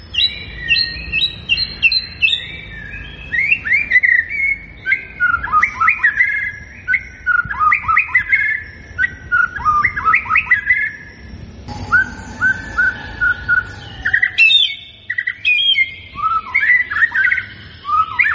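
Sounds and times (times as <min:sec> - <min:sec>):
white-rumped shama singing fluty whistles and warbling phrases: 0:00.1 - 0:18.3.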